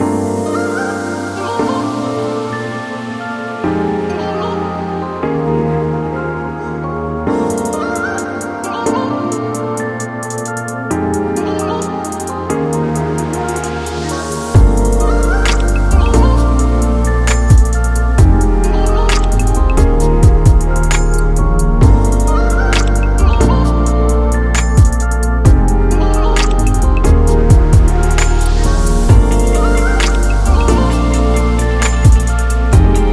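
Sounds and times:
chill music: 0:00.0 - 0:33.1.

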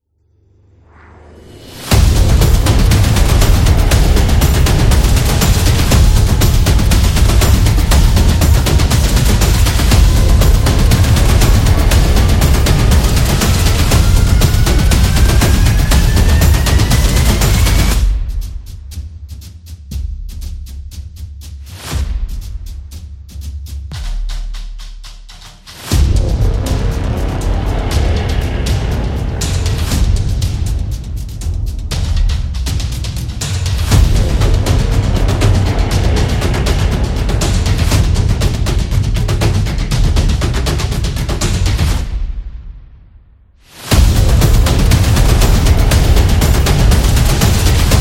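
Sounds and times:
war trailer music: 0:00.4 - 0:47.9.

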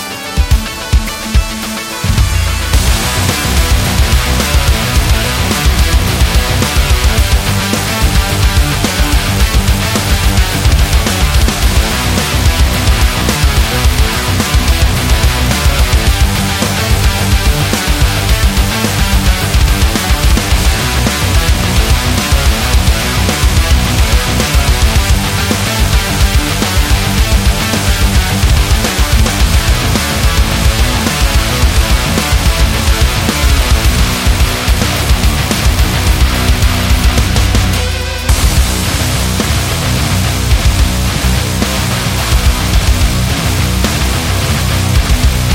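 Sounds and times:
metal hit: 0:00.4 - 0:45.5.

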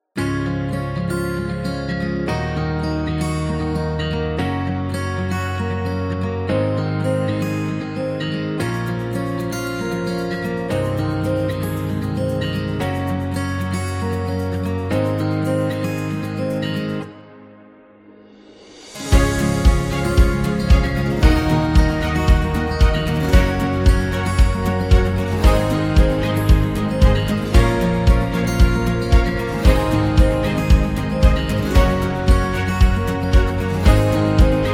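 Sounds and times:
cinematic indie corporate music: 0:00.2 - 0:34.7.

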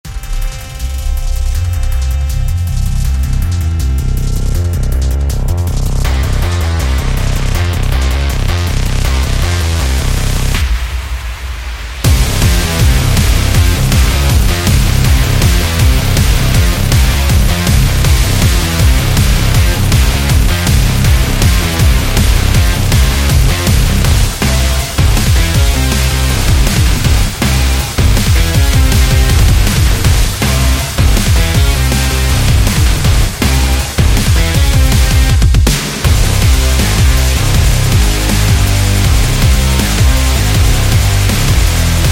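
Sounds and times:
extreme dubstep music: 0:00.0 - 0:42.1.

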